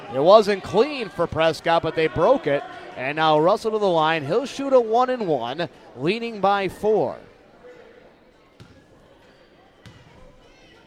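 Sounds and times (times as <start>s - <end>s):
crowd noise: 0.0s - 10.8s
speech: 0.1s - 7.3s
basketball bouncing on the court before a free throw: 8.6s - 8.9s, 9.8s - 10.4s.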